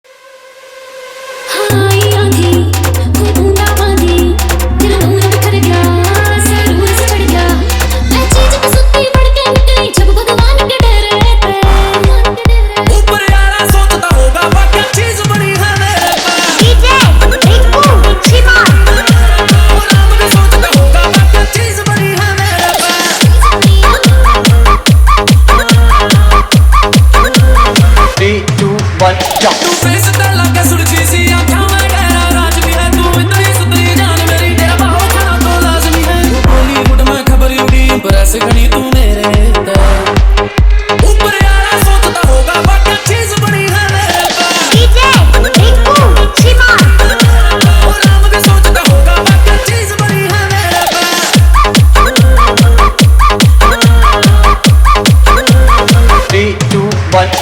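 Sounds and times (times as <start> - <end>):
Haryanvi song remix: 0.1 - 57.4.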